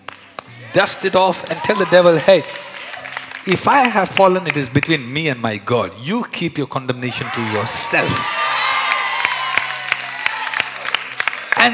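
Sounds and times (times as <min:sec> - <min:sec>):
audience clapping hands: 0:00.0 - 0:05.4, 0:08.0 - 0:11.7
speech: 0:00.7 - 0:02.6, 0:03.4 - 0:08.4.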